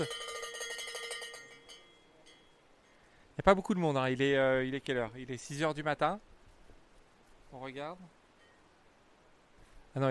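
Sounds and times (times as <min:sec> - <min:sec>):
supporters ringing cowbells at a race: 0:00.0 - 0:03.1
speech: 0:03.4 - 0:06.3, 0:07.5 - 0:08.2.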